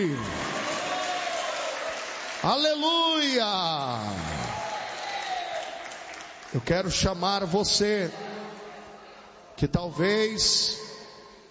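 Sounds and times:
speech: 0:00.0 - 0:00.5, 0:02.4 - 0:04.5, 0:06.5 - 0:08.3, 0:09.6 - 0:10.8
audience applauding: 0:00.0 - 0:06.8.

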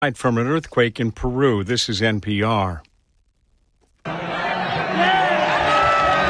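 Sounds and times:
speech: 0:00.0 - 0:02.9
jubilant soccer fans in Madrid Spain cheering on their team: 0:04.1 - 0:06.2.

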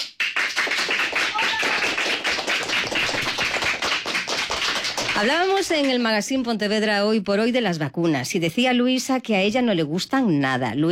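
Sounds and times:
children applauding in radio studio: 0:00.0 - 0:05.6
speech: 0:05.2 - 0:10.8.

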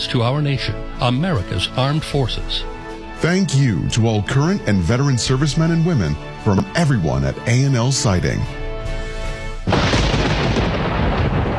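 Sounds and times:
speech: 0:00.1 - 0:08.6
storm noise: 0:09.7 - 0:11.5
thunder crack and rumble: 0:09.7 - 0:11.5.

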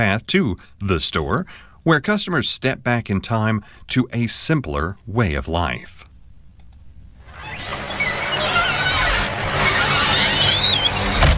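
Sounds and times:
speech: 0:00.0 - 0:06.1
screen door creaking open: 0:07.3 - 0:11.3.

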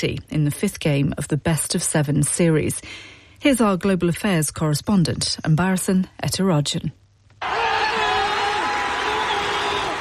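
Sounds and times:
speech: 0:00.0 - 0:07.6
New York Knicks supporters clapping and cheering: 0:07.4 - 0:10.0.

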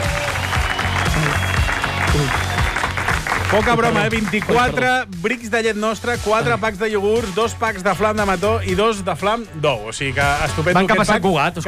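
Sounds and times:
audience applause: 0:00.0 - 0:04.8
speech: 0:02.2 - 0:02.5, 0:03.5 - 0:11.6.

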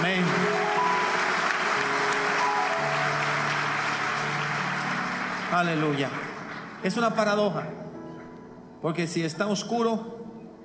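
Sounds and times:
crowd applauding: 0:00.0 - 0:07.4
speech: 0:05.6 - 0:07.8, 0:08.8 - 0:10.2.

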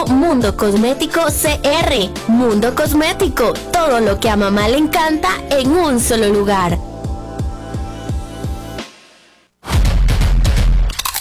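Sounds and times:
rhythmic thumping beat: 0:00.0 - 0:10.9
speech: 0:00.1 - 0:06.9
crunchy tortilla chip being bitten and chewed: 0:10.8 - 0:11.1.

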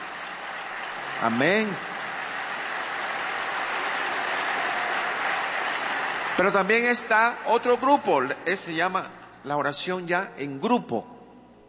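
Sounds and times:
applause: 0:00.0 - 0:08.0
speech: 0:01.2 - 0:01.9, 0:06.4 - 0:11.2.

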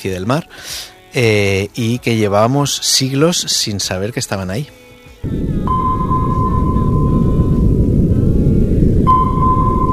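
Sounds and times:
speech: 0:00.0 - 0:05.9
sonar ping: 0:05.6 - 0:07.8, 0:09.0 - 0:09.9.

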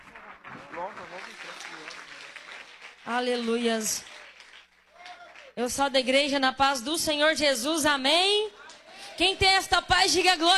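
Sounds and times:
audience clapping: 0:00.0 - 0:05.8, 0:09.4 - 0:10.5
speech: 0:03.1 - 0:04.1, 0:05.6 - 0:08.5, 0:09.2 - 0:10.5.

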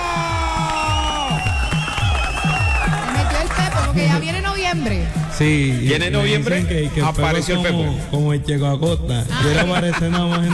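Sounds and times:
audience applause and cheering: 0:00.0 - 0:06.4
loud upbeat music with thumping bass beat: 0:00.0 - 0:10.5
speech: 0:04.0 - 0:10.5
laughter: 0:09.3 - 0:10.5.

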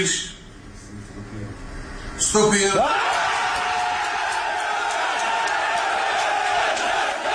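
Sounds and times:
speech: 0:00.0 - 0:00.4, 0:02.2 - 0:03.2
teammates cheering and shouting at squad announcement: 0:02.8 - 0:07.3.

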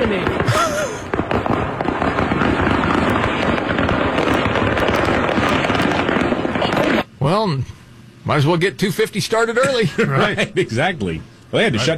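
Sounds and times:
fireworks exploding on a highway: 0:00.0 - 0:07.1
speech: 0:08.3 - 0:11.9
laughter: 0:09.6 - 0:10.9.

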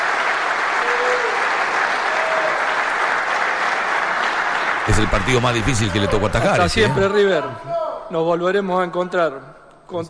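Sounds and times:
stadium crowd applauding: 0:00.0 - 0:07.2
speech: 0:04.9 - 0:10.0.

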